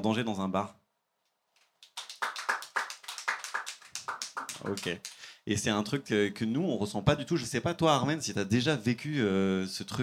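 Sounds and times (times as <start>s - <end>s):
speech: 0.0s - 0.8s, 4.6s - 10.0s
audience applause: 2.0s - 4.9s.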